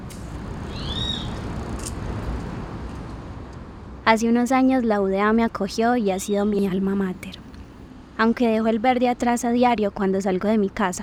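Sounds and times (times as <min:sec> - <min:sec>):
rumbling hum: 0:00.0 - 0:11.0
high sweeping bird chirps: 0:00.7 - 0:01.4
speech: 0:04.1 - 0:07.4, 0:08.2 - 0:11.0.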